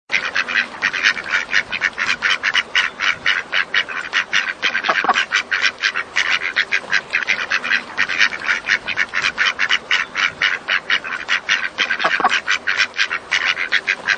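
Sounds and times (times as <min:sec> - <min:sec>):
duck quacking: 0:00.1 - 0:14.1.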